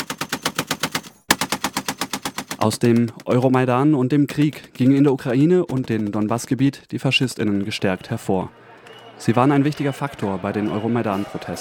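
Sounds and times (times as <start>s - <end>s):
automatic gunfire on a militarised front line in the Donbas: 0.0s - 2.7s
speech: 2.6s - 8.6s, 9.2s - 11.5s.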